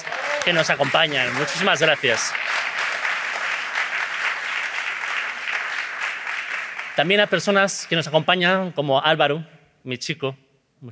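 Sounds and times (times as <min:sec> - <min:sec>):
audience applause: 0:00.0 - 0:08.1
speech: 0:00.4 - 0:02.7, 0:07.0 - 0:10.9.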